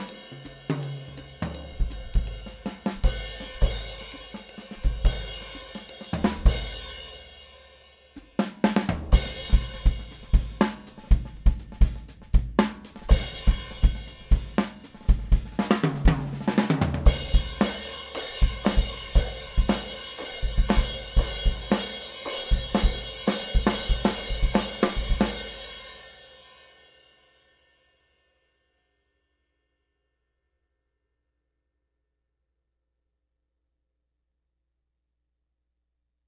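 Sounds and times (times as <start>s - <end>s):
Sabian Proto AA cymbal: 0.0s - 8.4s, 9.0s - 11.3s, 13.1s - 28.4s.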